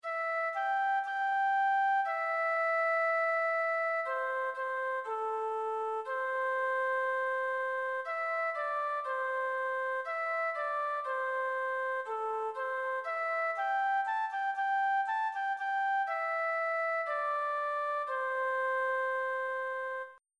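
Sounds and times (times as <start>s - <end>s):
MIDI music: 0.0s - 20.2s.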